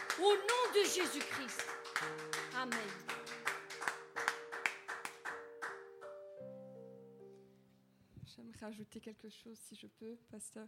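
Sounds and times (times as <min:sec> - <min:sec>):
group clapping in a steady rhythm: 0:00.0 - 0:06.2
speech: 0:00.2 - 0:03.2, 0:08.6 - 0:10.6.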